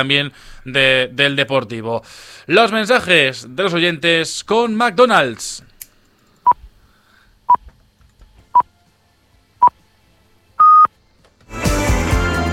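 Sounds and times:
speech: 0:00.0 - 0:05.7
radio time signal pips marking 10 pm: 0:10.6 - 0:10.9
loud music: 0:11.5 - 0:12.5.

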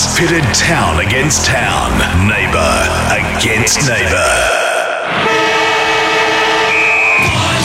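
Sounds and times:
speech: 0:00.2 - 0:04.5
football match siren sounding: 0:05.1 - 0:07.6.

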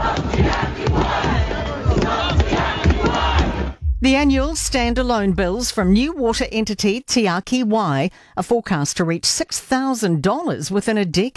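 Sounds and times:
protest crowd chanting outside Parliament: 0:00.0 - 0:03.8
speech: 0:04.0 - 0:11.3.

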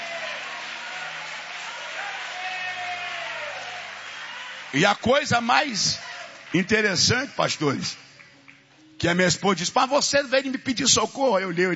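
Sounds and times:
audience clapping hands: 0:00.0 - 0:08.8
speech: 0:04.7 - 0:08.0, 0:09.0 - 0:11.7.

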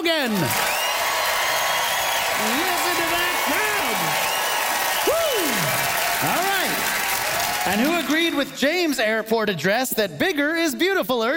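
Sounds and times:
audience applause vote: 0:00.0 - 0:08.9
speech: 0:00.1 - 0:00.7, 0:02.4 - 0:04.2, 0:07.7 - 0:11.3.

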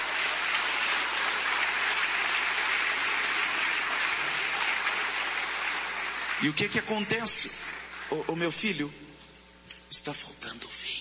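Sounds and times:
audience applauding: 0:00.0 - 0:08.7
speech: 0:06.4 - 0:09.2, 0:09.9 - 0:10.9.

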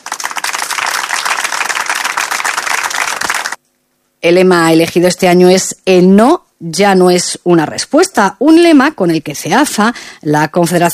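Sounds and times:
audience applause: 0:00.0 - 0:03.6
speech: 0:04.2 - 0:10.9.

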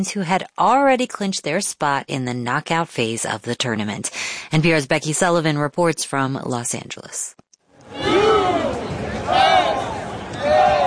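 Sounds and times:
speech: 0:00.0 - 0:08.0
rowdy stadium crowd cheering and chanting at a soccer match: 0:07.8 - 0:10.8.

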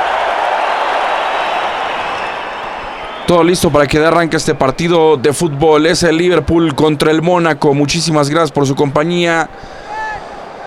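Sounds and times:
stadium crowd applauding: 0:00.0 - 0:05.1
speech: 0:03.3 - 0:09.8.

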